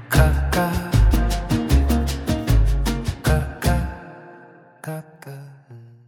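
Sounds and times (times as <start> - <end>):
bossa nova music: 0.1 - 4.1.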